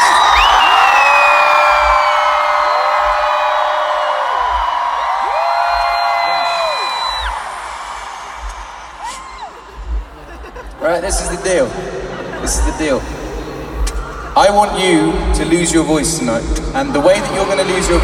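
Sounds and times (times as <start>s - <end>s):
huge concert crowd in Moscow screaming: 0.0s - 9.9s
laughter: 9.1s - 15.9s
speech: 11.0s - 13.2s, 14.4s - 18.0s.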